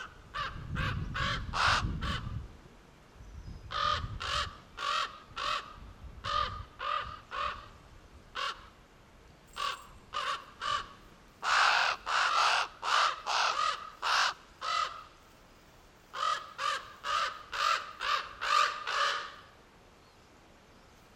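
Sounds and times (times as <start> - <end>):
raven cawing: 0.0 - 2.4, 3.7 - 8.8, 9.6 - 15.2, 16.1 - 19.6.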